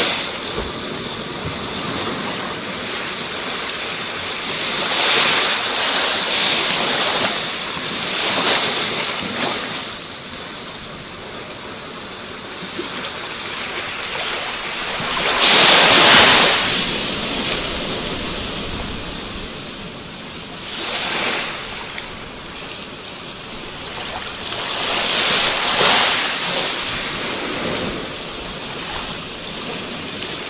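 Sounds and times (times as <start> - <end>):
ocean waves: 0.0 - 30.4.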